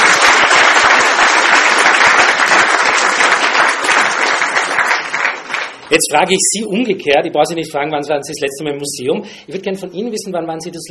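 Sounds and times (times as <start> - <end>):
audience applause: 0.0 - 5.9
speech: 5.9 - 10.8.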